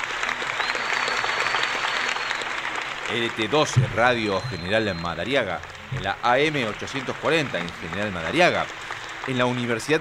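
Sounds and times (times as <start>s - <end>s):
applause: 0.0s - 10.0s
speech: 3.1s - 10.0s.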